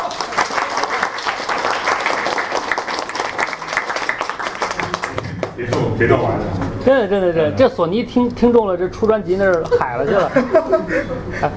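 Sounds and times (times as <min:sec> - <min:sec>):
audience applause: 0:00.0 - 0:06.0
speech: 0:05.7 - 0:11.5
laughter: 0:09.6 - 0:11.5.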